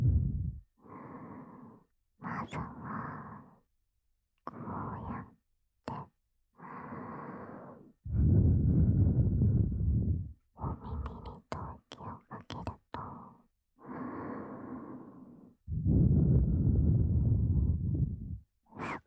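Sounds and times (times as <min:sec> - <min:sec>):
heartbeat: 0:00.0 - 0:00.6, 0:08.1 - 0:10.4, 0:15.7 - 0:18.4.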